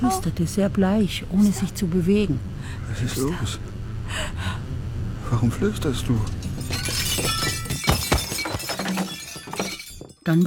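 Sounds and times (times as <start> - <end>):
speech: 0.0 - 4.5, 5.3 - 7.0, 10.3 - 10.4
glasses shattering: 6.3 - 10.4.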